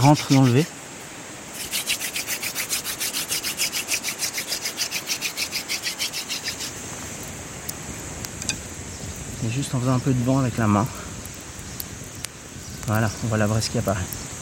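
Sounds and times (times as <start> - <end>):
wood rubbing against wood to make friction fire: 0.0 - 0.7, 1.6 - 6.8
speech: 0.0 - 0.8, 9.6 - 11.0, 12.9 - 14.2.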